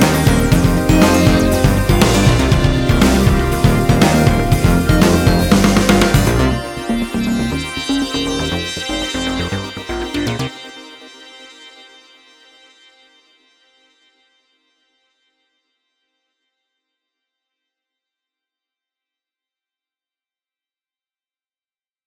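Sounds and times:
synthesizer jam: 0:00.0 - 0:11.1.

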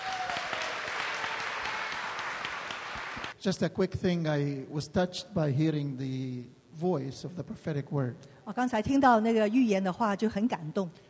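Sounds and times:
audience hand clapping: 0:00.0 - 0:03.4
speech: 0:03.4 - 0:11.0.

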